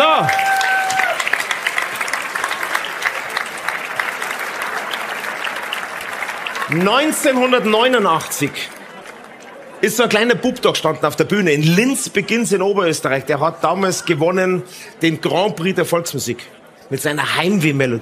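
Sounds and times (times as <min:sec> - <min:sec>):
audience applause: 0:00.0 - 0:10.4
speech: 0:06.7 - 0:08.8, 0:09.8 - 0:18.0.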